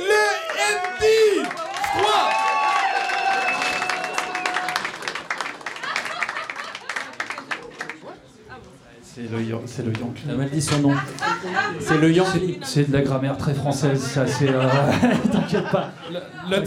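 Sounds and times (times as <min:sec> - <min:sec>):
audience applause: 0:00.0 - 0:08.1
laughter: 0:04.7 - 0:07.9, 0:10.7 - 0:12.0, 0:14.0 - 0:16.6
speech: 0:09.3 - 0:16.6.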